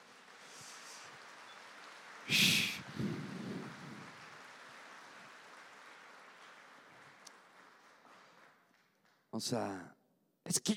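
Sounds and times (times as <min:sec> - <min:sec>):
audience applause: 0:00.0 - 0:09.2
speech: 0:02.3 - 0:03.1, 0:09.4 - 0:09.9, 0:10.5 - 0:10.7.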